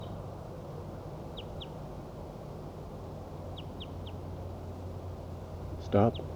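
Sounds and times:
wild bird calling: 0:00.0 - 0:06.3.

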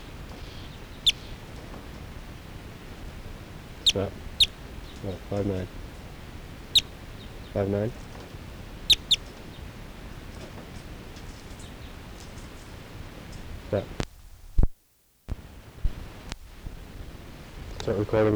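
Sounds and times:
bird call: 0:00.0 - 0:14.0
speech: 0:03.9 - 0:04.3, 0:05.0 - 0:05.9, 0:07.6 - 0:08.1, 0:13.7 - 0:14.0, 0:17.9 - 0:18.3.

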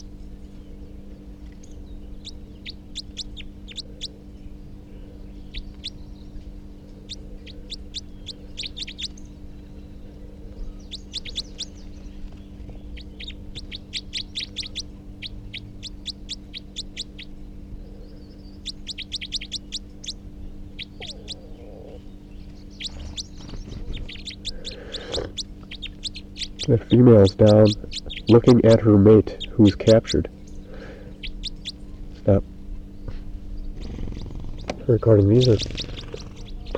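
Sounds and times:
steady low hum: 0:00.0 - 0:36.7
wild male bird giving rapid high-pitched calls: 0:02.1 - 0:04.2, 0:07.0 - 0:09.5, 0:10.6 - 0:32.0, 0:33.6 - 0:36.7
speech: 0:26.7 - 0:30.4, 0:32.2 - 0:32.5, 0:34.9 - 0:35.8.

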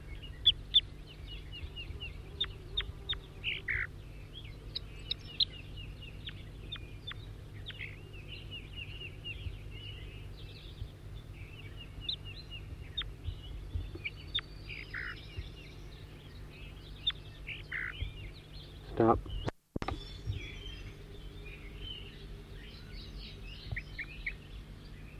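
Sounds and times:
bird song: 0:00.0 - 0:25.1
speech: 0:19.0 - 0:19.3.

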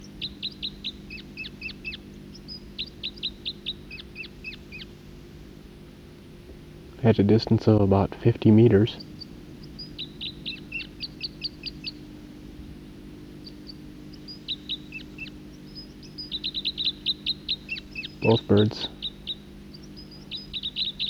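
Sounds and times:
two birds calling: 0:00.0 - 0:21.0
speech: 0:07.0 - 0:09.1, 0:18.3 - 0:19.0.

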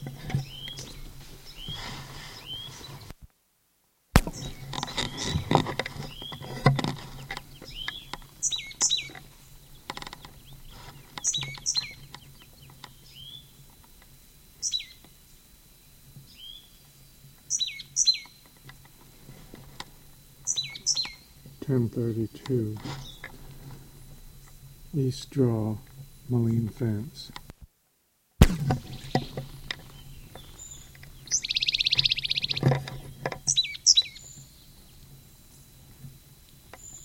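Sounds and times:
low steady hum: 0:00.0 - 0:37.0
bird calling with short high chirps: 0:00.4 - 0:01.8, 0:07.5 - 0:13.5, 0:14.6 - 0:15.0, 0:17.5 - 0:18.4, 0:20.4 - 0:21.4, 0:28.8 - 0:35.0
speech: 0:21.7 - 0:23.2, 0:25.0 - 0:27.4.

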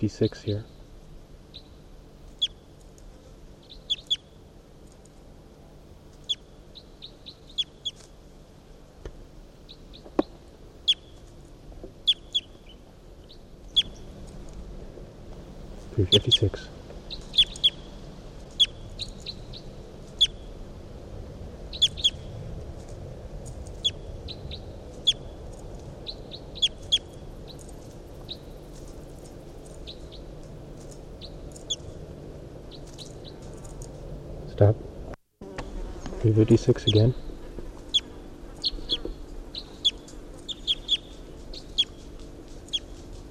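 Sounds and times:
speech: 0:00.0 - 0:00.8, 0:16.0 - 0:16.8, 0:36.4 - 0:37.3
bird song recording: 0:00.0 - 0:02.8, 0:03.5 - 0:04.5, 0:06.1 - 0:08.1, 0:09.6 - 0:14.3, 0:15.9 - 0:20.6, 0:21.7 - 0:22.4, 0:23.7 - 0:32.0, 0:32.6 - 0:33.9, 0:36.5 - 0:43.0.

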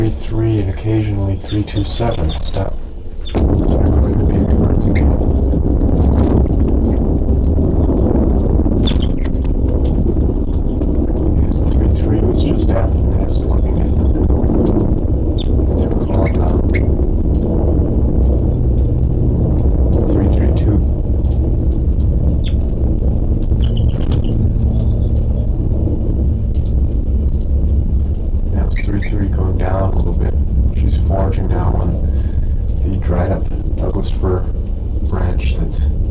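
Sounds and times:
loud low rumble: 0:00.0 - 0:36.0
speech: 0:00.1 - 0:02.8
high-pitched bird chirps: 0:03.2 - 0:11.5, 0:12.4 - 0:17.5, 0:18.2 - 0:18.4, 0:19.2 - 0:19.4, 0:22.4 - 0:22.8, 0:23.6 - 0:25.2
squawking bird calls: 0:03.2 - 0:11.6, 0:12.4 - 0:17.5.

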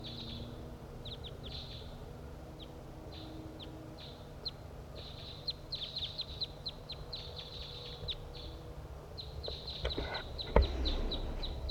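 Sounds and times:
wild crossbill chip calls: 0:00.0 - 0:02.0, 0:02.6 - 0:08.6, 0:09.2 - 0:11.6
thump: 0:10.5 - 0:11.2
steady low rumble: 0:10.5 - 0:11.6.

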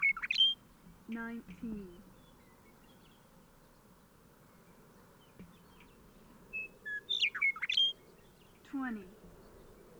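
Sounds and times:
bird singing whistled notes and chirps: 0:00.0 - 0:00.6, 0:06.6 - 0:08.3
speech: 0:01.1 - 0:02.1, 0:08.7 - 0:09.3.

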